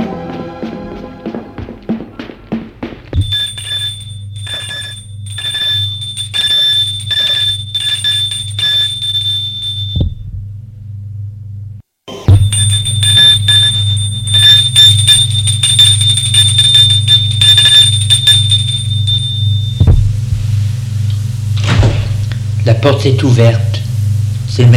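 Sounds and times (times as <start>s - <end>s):
loud low hum: 0.1s - 24.7s
electric doorbell ringing at an apartment door: 3.2s - 10.1s, 12.3s - 19.9s
speech: 22.8s - 23.7s, 24.6s - 24.7s.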